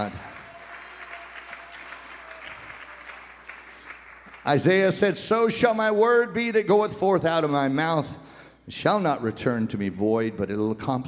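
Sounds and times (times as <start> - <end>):
speech: 0.0 - 0.3, 4.4 - 11.0
audience clapping: 0.0 - 5.2.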